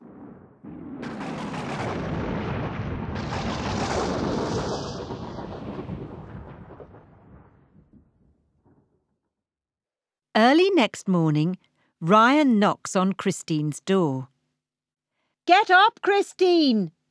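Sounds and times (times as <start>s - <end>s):
thunderstorm: 0.0s - 9.0s
speech: 10.4s - 14.3s, 15.5s - 17.0s.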